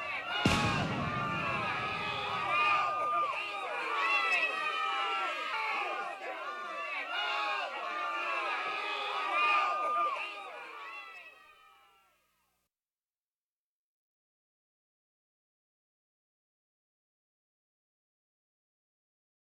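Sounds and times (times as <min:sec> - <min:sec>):
crowd screaming in a disaster: 0:00.0 - 0:12.0
gunshots in a disaster: 0:00.3 - 0:03.2
explosions in a disaster: 0:00.4 - 0:02.8.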